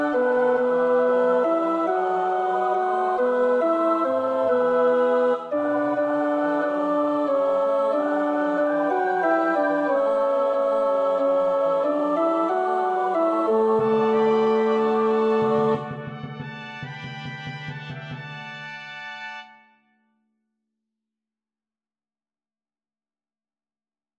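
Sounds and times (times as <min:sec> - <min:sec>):
tenor practising a choir part: 0:00.0 - 0:16.2.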